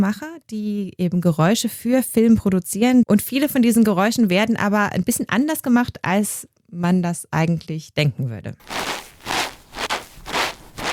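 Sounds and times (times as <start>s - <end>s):
speech: 0.0s - 9.0s
Foley snow footsteps made by squeezing a cloth bag of cornstarch: 8.6s - 10.9s.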